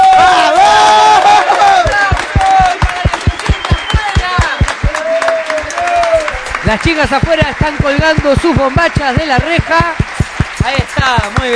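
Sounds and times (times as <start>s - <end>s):
audience applause and cheering: 0.0s - 11.5s
speech: 6.7s - 10.0s, 10.6s - 11.5s.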